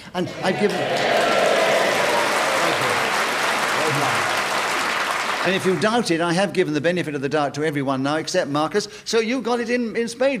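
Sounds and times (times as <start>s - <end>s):
speech: 0.1s - 1.2s, 5.4s - 10.3s
spontaneous round of applause: 0.4s - 6.1s.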